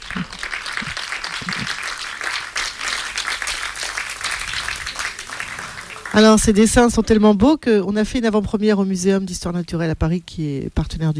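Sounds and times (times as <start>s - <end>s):
audience applause: 0.0s - 7.0s
speech: 6.2s - 11.1s.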